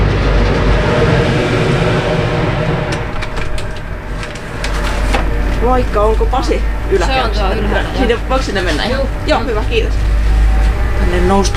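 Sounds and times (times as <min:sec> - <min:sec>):
car ferry engine rumble departing from the dock: 0:00.0 - 0:11.5
speech: 0:05.7 - 0:10.1, 0:11.0 - 0:11.5.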